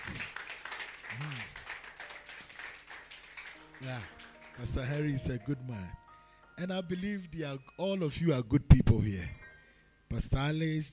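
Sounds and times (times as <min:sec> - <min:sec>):
audience applause: 0:00.0 - 0:04.8
speech: 0:03.8 - 0:06.0, 0:06.6 - 0:09.4, 0:10.1 - 0:10.9.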